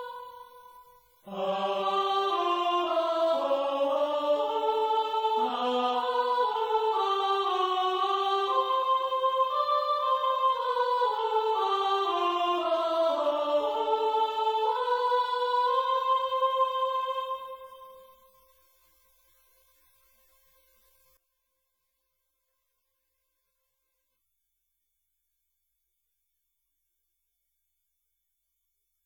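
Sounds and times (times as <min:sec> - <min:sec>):
soprano voice: 0:01.3 - 0:18.0.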